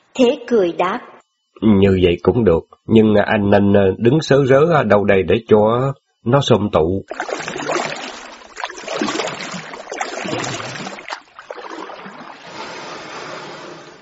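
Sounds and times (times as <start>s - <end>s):
speech: 0.2s - 7.6s
water sloshing and splashing around a small wooden boat: 7.1s - 13.9s.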